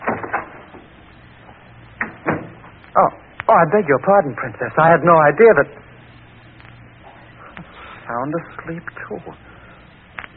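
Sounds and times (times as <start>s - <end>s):
door being opened: 0.0s - 0.9s, 1.9s - 2.8s
speech: 3.0s - 5.9s, 8.2s - 9.5s.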